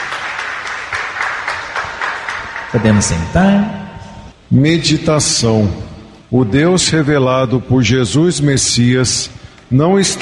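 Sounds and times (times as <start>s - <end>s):
congregation clapping after the gospel reading at a church Mass: 0.0s - 4.4s
speech: 2.7s - 3.8s, 4.5s - 10.2s.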